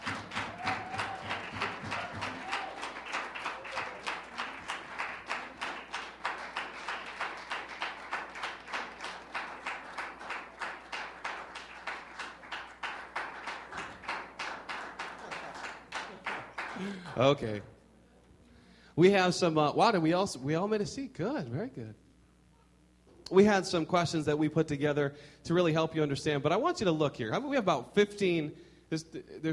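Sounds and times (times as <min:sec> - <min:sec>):
audience applause: 0:00.0 - 0:17.4
speech: 0:16.8 - 0:17.7, 0:19.0 - 0:22.0, 0:23.3 - 0:29.5.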